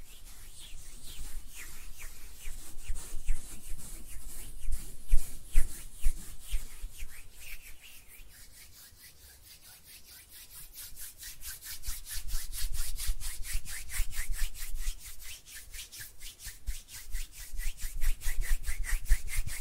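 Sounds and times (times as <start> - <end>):
hands rubbing together: 0.0 - 19.5.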